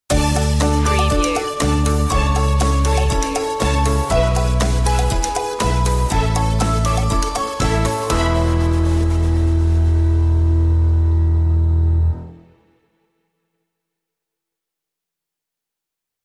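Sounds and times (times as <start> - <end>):
music stinger: 0.1 - 12.9.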